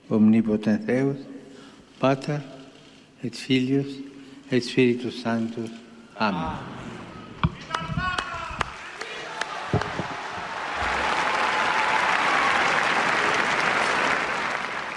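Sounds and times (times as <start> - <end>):
speech: 0.1 - 1.3, 2.0 - 2.5, 3.2 - 6.9
applause from pilgrims in audience hall: 7.6 - 14.9.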